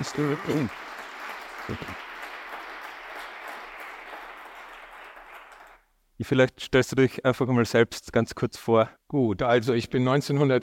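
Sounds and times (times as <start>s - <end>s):
audience applause: 0.0s - 5.8s
speech: 0.1s - 0.9s, 1.7s - 2.1s, 6.2s - 10.6s.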